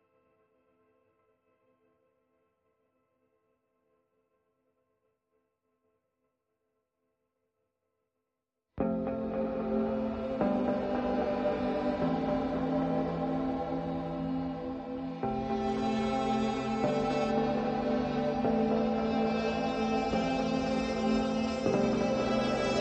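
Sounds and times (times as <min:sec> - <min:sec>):
middle strings: 0:08.8 - 0:22.7.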